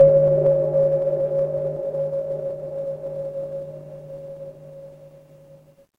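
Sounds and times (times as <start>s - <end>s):
electric hum: 0.0s - 5.9s.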